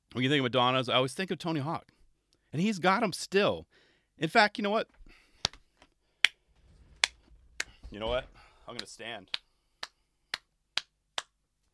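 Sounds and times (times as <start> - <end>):
speech: 0.2 - 5.0, 7.9 - 9.4
soft golf clap: 6.2 - 11.3.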